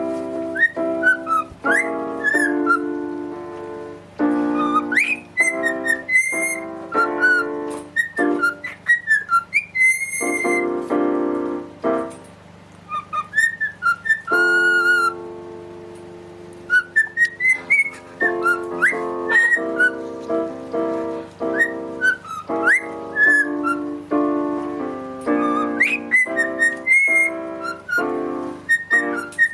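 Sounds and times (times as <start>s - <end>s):
cockatiel whistling: 0.0s - 3.2s, 4.3s - 10.9s, 12.9s - 15.2s, 16.7s - 20.5s, 21.4s - 24.4s, 25.2s - 29.5s
piano chords: 0.0s - 29.5s.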